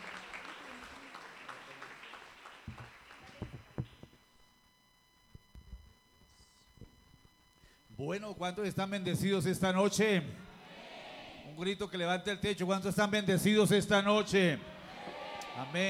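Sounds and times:
crowd applauding in a large room: 0:00.0 - 0:04.0
speech: 0:08.0 - 0:10.4, 0:11.6 - 0:14.7, 0:15.6 - 0:15.8.

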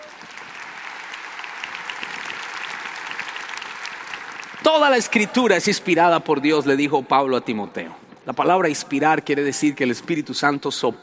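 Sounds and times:
crowd applauding: 0:00.0 - 0:05.7
speech: 0:04.7 - 0:11.0.

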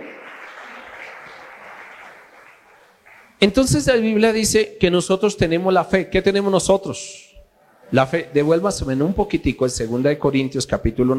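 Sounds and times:
audience applauding: 0:00.0 - 0:03.4
speech: 0:03.4 - 0:07.3, 0:07.9 - 0:11.1.

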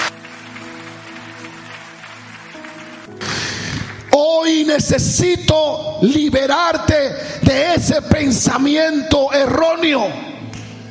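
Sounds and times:
audience applause: 0:00.0 - 0:04.1
speech: 0:04.2 - 0:10.3.

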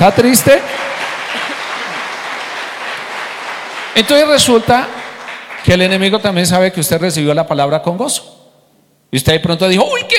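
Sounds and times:
speech: 0:00.0 - 0:01.4, 0:04.0 - 0:05.0, 0:05.6 - 0:08.4, 0:09.1 - 0:10.1
audience applause: 0:00.0 - 0:06.3.

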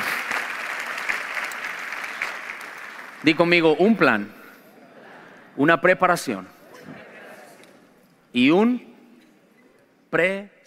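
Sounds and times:
audience applause: 0:00.0 - 0:03.6
speech: 0:03.2 - 0:04.4, 0:05.6 - 0:06.6, 0:08.4 - 0:08.9, 0:10.1 - 0:10.6.

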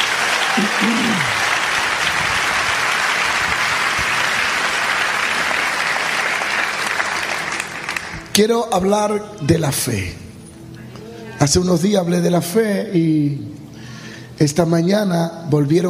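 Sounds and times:
audience applause: 0:00.0 - 0:08.3
speech: 0:00.6 - 0:01.4, 0:08.4 - 0:10.2, 0:11.4 - 0:13.6, 0:14.4 - 0:15.8.

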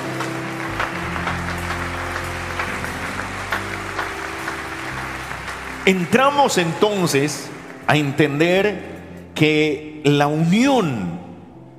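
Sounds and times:
audience applause: 0:00.0 - 0:08.4
speech: 0:05.8 - 0:11.2.

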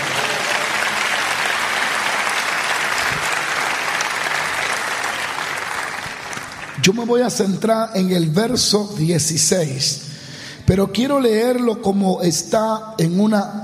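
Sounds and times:
audience applause: 0:00.0 - 0:06.9
speech: 0:06.9 - 0:10.1, 0:10.7 - 0:13.6.

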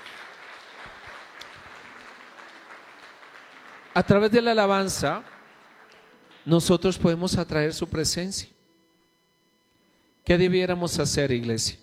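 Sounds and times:
audience applause: 0:00.0 - 0:06.5
speech: 0:04.0 - 0:05.3, 0:06.4 - 0:08.6, 0:10.3 - 0:11.8.

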